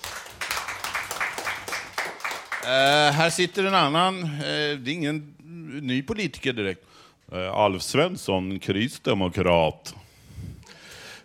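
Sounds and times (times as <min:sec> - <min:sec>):
audience applause: 0:00.0 - 0:03.3
speech: 0:02.6 - 0:10.0.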